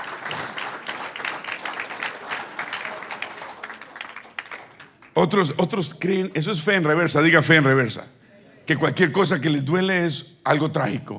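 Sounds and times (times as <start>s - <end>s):
audience applause: 0.0s - 5.2s
speech: 5.2s - 11.1s.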